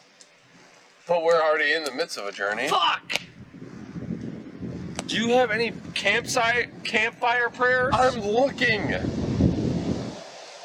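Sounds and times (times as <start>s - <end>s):
speech: 1.1s - 3.2s, 5.1s - 9.2s
strong wind blowing: 2.6s - 10.6s.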